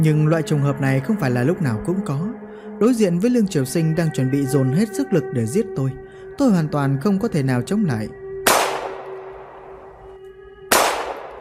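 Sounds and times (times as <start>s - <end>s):
speech: 0.0s - 8.2s
gunshots: 8.5s - 9.8s, 10.7s - 11.3s.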